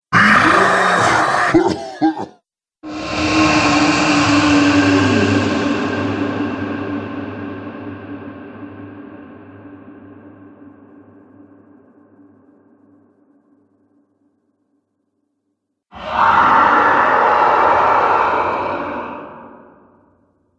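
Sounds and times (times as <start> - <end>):
dragon monster sounds: 0.1 - 6.2, 15.9 - 20.1.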